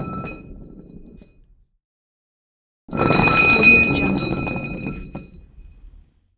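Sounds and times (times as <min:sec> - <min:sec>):
short thick metal pipe rolling: 0:02.9 - 0:06.1.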